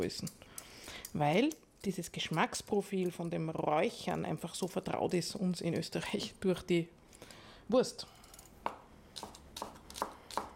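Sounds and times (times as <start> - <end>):
speech: 0.0 - 7.0, 7.7 - 8.2
knife chopping spring onions and pickled ginger on a board: 8.6 - 10.5.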